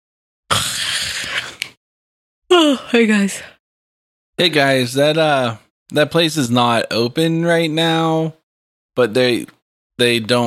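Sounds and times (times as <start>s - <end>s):
big yawn: 0.5s - 1.8s
speech: 2.6s - 3.6s, 4.4s - 8.4s, 9.0s - 10.4s.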